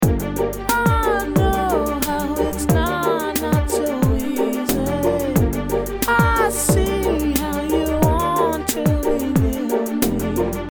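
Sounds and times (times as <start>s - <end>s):
strings: 0.0s - 10.7s
vocals: 0.0s - 10.7s.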